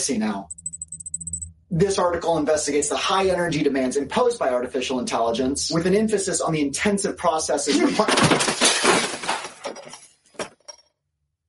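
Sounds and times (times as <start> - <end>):
speech: 0.0 - 0.6, 1.7 - 8.6
keyboard hurled and crashing: 7.7 - 10.7.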